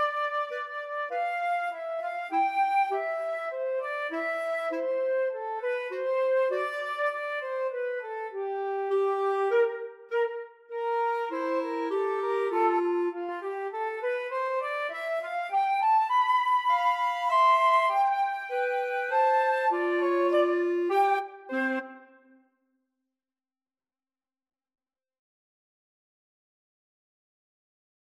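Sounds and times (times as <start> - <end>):
flute and clarinet duet: 0.0 - 22.3.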